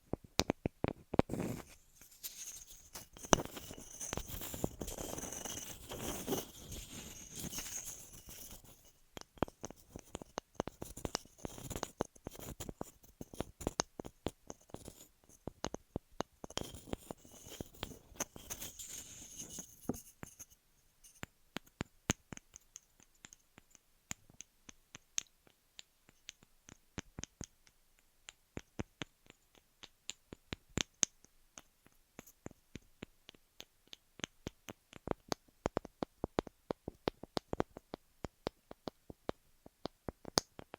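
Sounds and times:
sharp clicks and taps: 0.1s - 6.5s, 7.4s - 40.7s
ear massage and cleaning rubbing and rustling: 1.3s - 8.9s, 16.6s - 21.2s.

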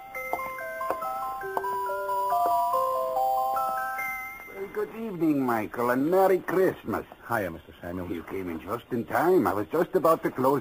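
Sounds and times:
music box playing a delicate bell-like melody: 0.0s - 5.1s
speech: 5.0s - 10.5s.

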